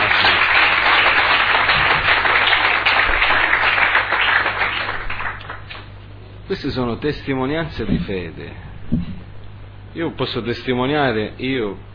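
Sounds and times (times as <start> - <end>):
audience applause: 0.0 - 5.8
speech: 6.5 - 9.2, 10.0 - 11.9.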